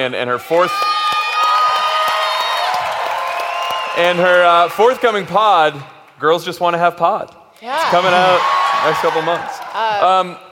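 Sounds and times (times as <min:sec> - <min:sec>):
speech: 0:00.0 - 0:00.9, 0:04.0 - 0:10.4
live audience cheering and whooping: 0:00.6 - 0:05.4, 0:07.7 - 0:10.1.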